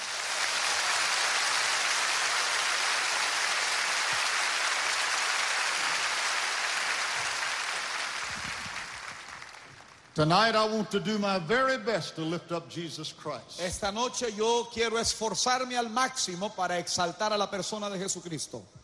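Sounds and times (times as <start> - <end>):
church congregation applauding in praise: 0.0 - 10.2
speech: 10.2 - 18.8.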